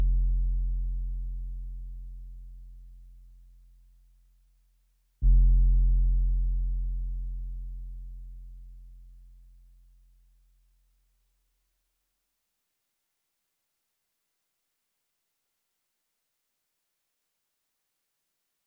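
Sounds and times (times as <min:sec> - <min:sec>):
bass: 0:00.0 - 0:11.4.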